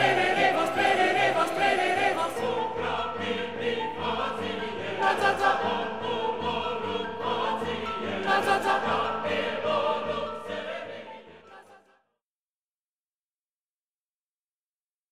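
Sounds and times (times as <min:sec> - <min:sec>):
second choir tenor singing: 0:00.0 - 0:12.0.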